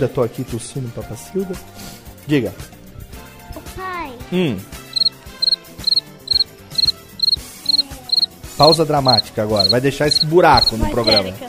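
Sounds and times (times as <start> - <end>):
speech: 0.0 - 2.8, 4.3 - 4.8, 8.6 - 11.4
cricket chirping: 4.9 - 11.2.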